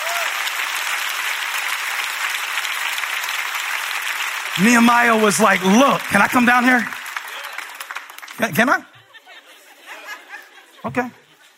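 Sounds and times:
audience applauding: 0:00.0 - 0:08.8
speech: 0:04.6 - 0:07.0, 0:08.4 - 0:08.9, 0:10.8 - 0:11.5
laughter: 0:07.2 - 0:11.5.

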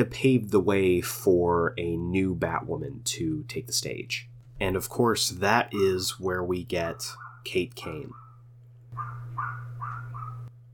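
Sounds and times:
speech: 0:00.0 - 0:08.2
constant low electrical hum: 0:00.0 - 0:10.7
neighbor's dog barking: 0:05.8 - 0:06.0, 0:06.9 - 0:08.4, 0:09.0 - 0:10.5.

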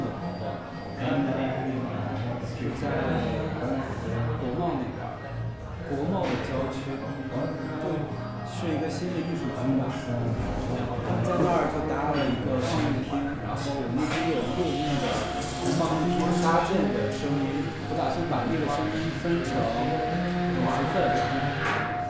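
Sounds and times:
murmur of overlapping voices in a café beside Ditan, Beijing: 0:00.0 - 0:22.0
cups or cutlery clinking: 0:10.6 - 0:18.1.

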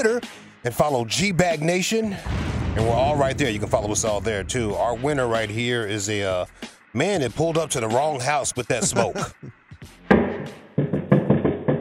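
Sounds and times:
speech: 0:00.0 - 0:09.9
laughter: 0:08.7 - 0:09.5
knocking on a door: 0:10.2 - 0:11.8.

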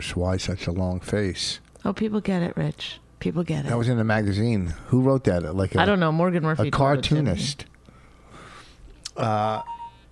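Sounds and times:
speech: 0:00.0 - 0:07.7, 0:09.2 - 0:09.7
iPhone text message notification sound: 0:09.5 - 0:10.0.

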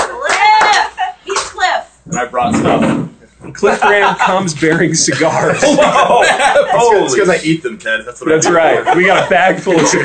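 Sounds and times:
studio audience clapping: 0:00.0 - 0:01.6
speech: 0:02.4 - 0:03.0, 0:03.6 - 0:10.0
laughter: 0:03.5 - 0:10.0.

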